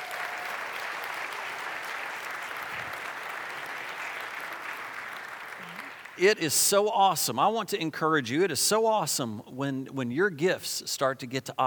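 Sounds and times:
round of applause: 0.0s - 6.3s
speech: 6.2s - 11.6s.

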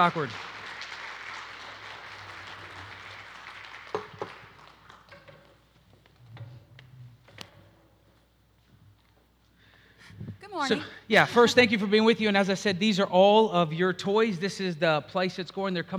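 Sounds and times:
speech: 0.0s - 0.5s, 10.6s - 15.9s
audience clapping: 0.0s - 5.8s.

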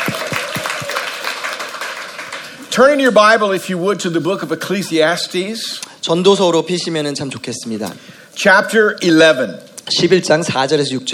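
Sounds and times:
audience applause for a church worship team: 0.0s - 3.0s
speech: 2.8s - 11.1s.

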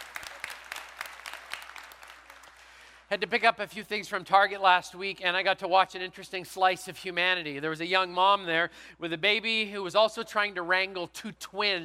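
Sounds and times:
audience clapping: 0.0s - 3.1s
speech: 3.1s - 11.8s.

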